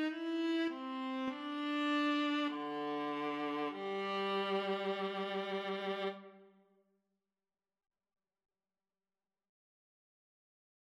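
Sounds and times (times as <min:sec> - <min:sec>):
viola duet: 0:00.0 - 0:06.5.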